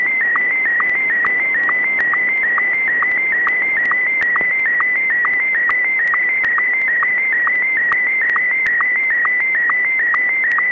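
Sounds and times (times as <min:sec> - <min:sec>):
SSTV transmission from the ISS in Martin 1 mode on 145.800 MHz: 0:00.0 - 0:10.7.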